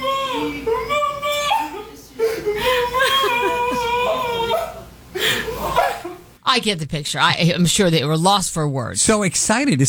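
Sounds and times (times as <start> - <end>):
soccer player sobbing on seeing his mother: 0.0 - 6.2
speech: 6.6 - 9.8.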